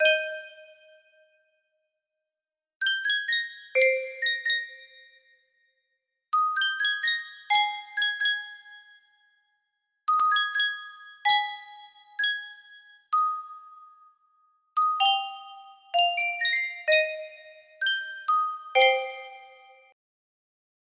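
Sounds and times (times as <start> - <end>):
Sankyo custom tune music box: 0.0 - 1.0, 2.8 - 5.3, 6.4 - 9.2, 10.1 - 20.0.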